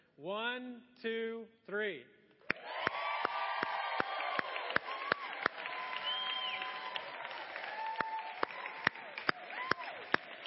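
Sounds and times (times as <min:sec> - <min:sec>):
speech: 0:00.2 - 0:02.2
church congregation cheering for the dads at a Father's Day service: 0:02.5 - 0:10.4
congregation clapping: 0:02.5 - 0:10.4.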